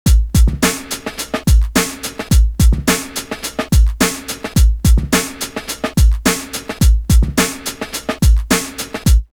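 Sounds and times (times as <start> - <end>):
music beat: 0.0 - 9.3.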